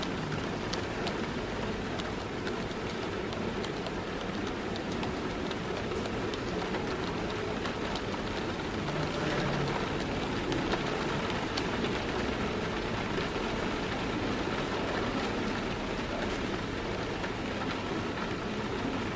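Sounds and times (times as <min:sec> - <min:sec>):
rain pattering on a window: 0:00.0 - 0:19.1
people chattering quietly at tables: 0:08.7 - 0:10.8.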